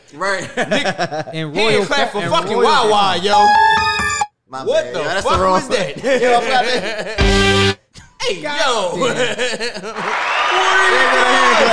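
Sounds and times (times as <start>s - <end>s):
speech: 0.1s - 3.8s, 4.5s - 11.7s
rhythmic laughter: 0.4s - 1.5s, 5.8s - 7.2s, 9.0s - 10.2s.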